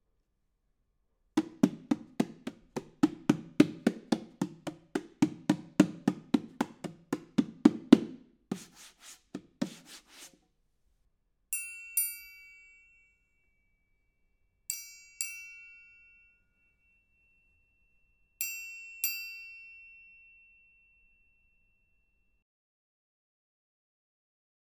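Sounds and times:
percussion: 1.4 - 10.4, 11.6 - 13.8, 14.7 - 22.0.

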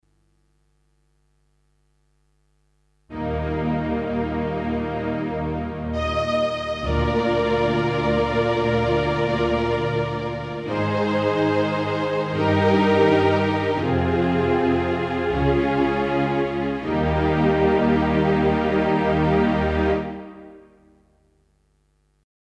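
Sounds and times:
string music: 3.1 - 21.0.

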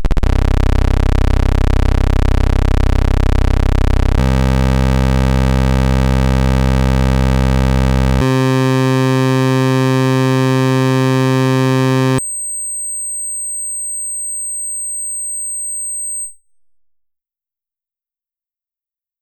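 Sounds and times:
synth pulse wave oscillator: 0.2 - 12.2.

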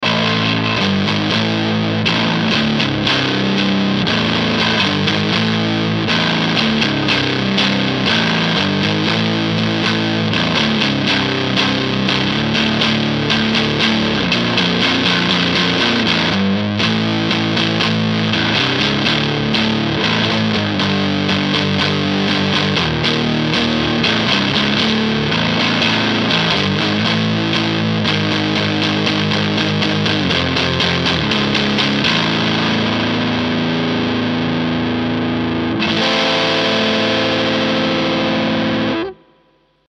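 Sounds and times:
Ibanez electric guitar on center bridge pickup: 0.0 - 39.9.

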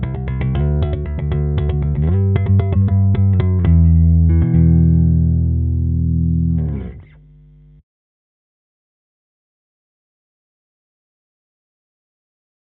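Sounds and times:
metal guitar through Block 300B EQ cabinet: 0.0 - 7.2.

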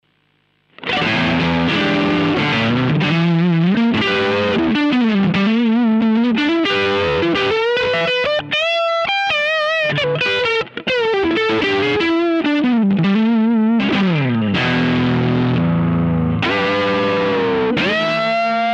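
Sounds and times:
electric guitar on cranked clean channel: 0.7 - 18.7.

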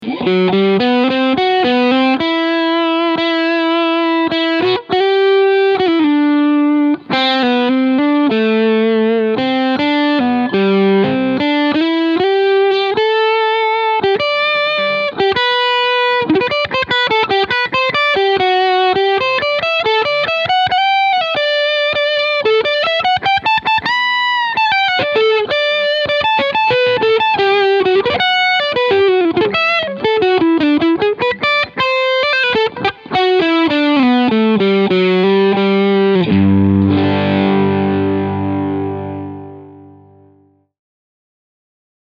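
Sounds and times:
overdriven guitar on middle and bridge pickups: 0.0 - 40.7.

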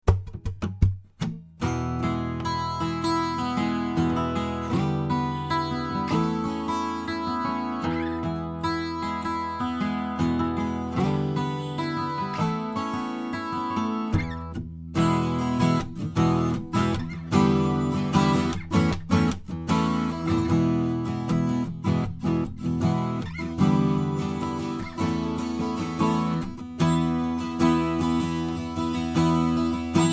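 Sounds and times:
dry Taylor 12-string guitar: 0.1 - 30.1.

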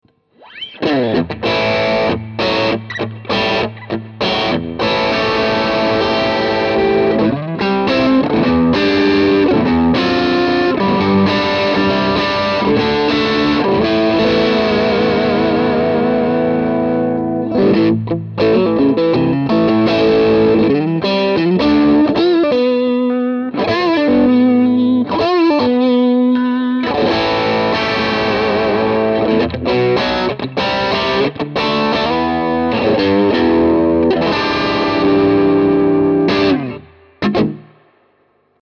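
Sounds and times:
vintage gain Stratocaster electric guitar: 0.0 - 38.6.

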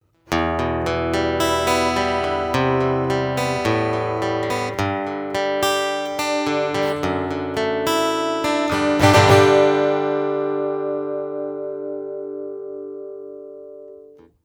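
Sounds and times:
acoustic guitar: 0.1 - 14.4.

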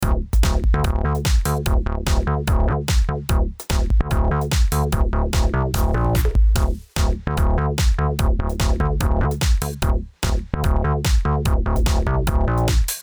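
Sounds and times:
Tierra Audio Gravity VCA synth groove with fast attack and release: 0.0 - 12.8.

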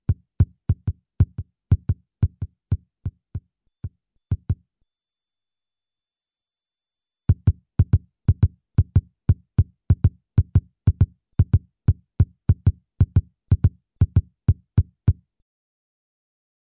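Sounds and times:
drum: 0.1 - 3.2, 4.3 - 4.6, 7.3 - 11.6, 12.2 - 15.1.

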